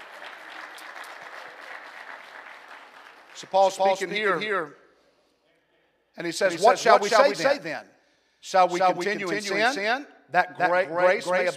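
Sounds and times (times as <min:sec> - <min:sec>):
audience clapping hands: 0:00.0 - 0:04.5
speech: 0:03.4 - 0:04.8, 0:06.2 - 0:11.5.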